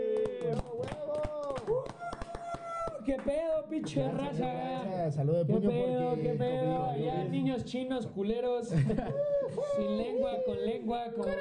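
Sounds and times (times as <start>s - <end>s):
voices whooping and cheering: 0.0s - 3.0s, 9.1s - 11.3s
hand claps: 0.0s - 4.1s
speech: 3.1s - 11.3s
laughter: 8.7s - 11.3s.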